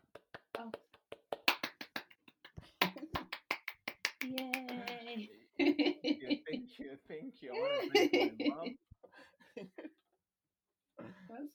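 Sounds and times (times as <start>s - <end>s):
hand clapping: 0.0s - 5.2s
speech: 0.6s - 0.9s, 6.3s - 8.9s
laughter: 5.6s - 6.8s, 7.6s - 8.8s.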